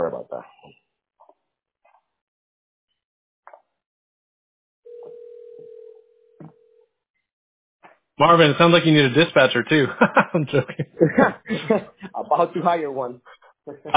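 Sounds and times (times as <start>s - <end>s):
speech: 0.2s - 0.6s, 8.2s - 13.9s
telephone dial tone: 4.9s - 6.7s
laughter: 9.5s - 13.9s.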